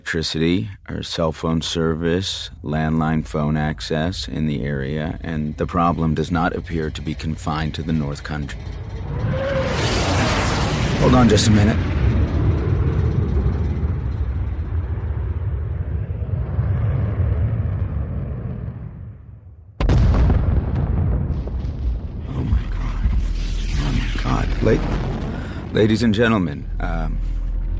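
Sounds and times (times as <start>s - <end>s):
speech: 0.1s - 9.5s, 11.0s - 12.0s, 24.7s - 25.0s, 25.8s - 27.4s
jet roar: 7.7s - 19.5s, 22.3s - 27.7s
explosive blast: 8.6s - 27.7s.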